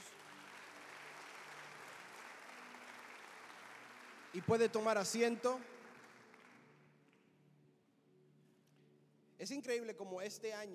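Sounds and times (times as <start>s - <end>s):
audience applauding: 0.0s - 7.3s
speech: 4.3s - 5.7s, 9.4s - 10.7s.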